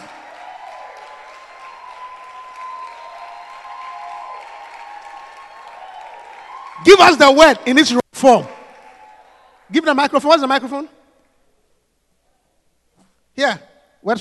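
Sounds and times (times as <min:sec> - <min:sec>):
audience applause: 0:00.0 - 0:07.8, 0:08.4 - 0:09.7
speech: 0:06.8 - 0:08.6, 0:09.7 - 0:11.0, 0:13.4 - 0:14.2.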